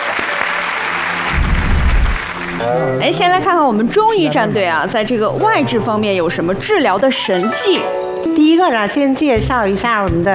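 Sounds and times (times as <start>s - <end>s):
audience applause: 0.0s - 2.6s
speech: 2.6s - 10.3s.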